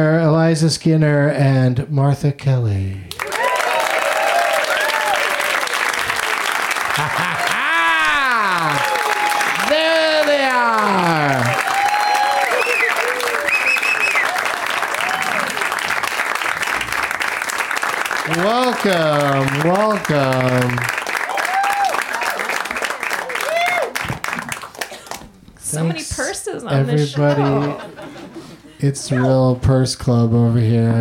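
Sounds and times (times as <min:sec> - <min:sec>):
speech: 0:00.0 - 0:03.2, 0:07.0 - 0:07.5, 0:18.8 - 0:20.9, 0:25.7 - 0:27.9, 0:28.8 - 0:30.9
studio audience applause at a comedy show: 0:03.1 - 0:25.2
laughter: 0:06.7 - 0:11.6, 0:26.8 - 0:29.5.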